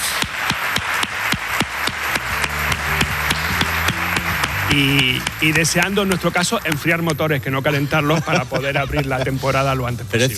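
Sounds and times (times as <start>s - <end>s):
large theatre audience applauding: 0.0s - 9.2s
low musical hum: 2.0s - 8.4s
laughter: 2.3s - 10.0s
speech: 4.7s - 10.3s.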